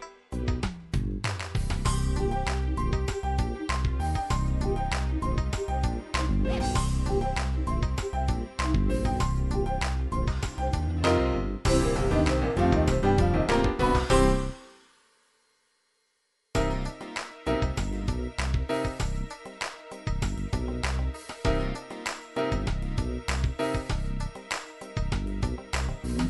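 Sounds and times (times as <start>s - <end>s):
techno trip hop music: 0.5s - 11.0s, 11.7s - 14.7s, 16.6s - 26.2s.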